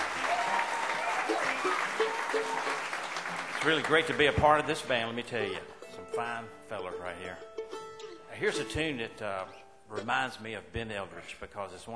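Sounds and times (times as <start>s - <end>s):
audience applause welcoming a new band member at a live show: 0.0s - 4.9s
speech: 3.6s - 7.5s, 8.4s - 11.9s.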